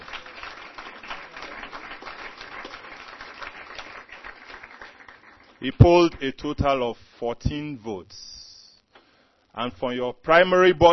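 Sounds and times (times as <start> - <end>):
audience applause: 0.0 - 5.6
speech: 5.6 - 8.4, 9.6 - 10.9.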